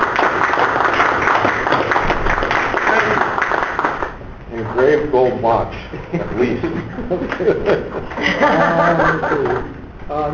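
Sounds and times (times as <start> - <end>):
round of applause: 0.0 - 4.2
speech: 5.1 - 10.3
laughter: 5.2 - 9.8.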